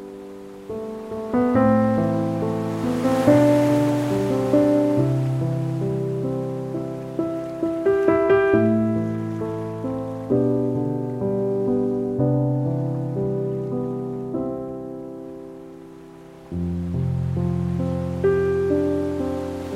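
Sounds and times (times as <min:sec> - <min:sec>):
ocean waves: 0:00.0 - 0:19.7
peaceful piano music: 0:00.0 - 0:19.7.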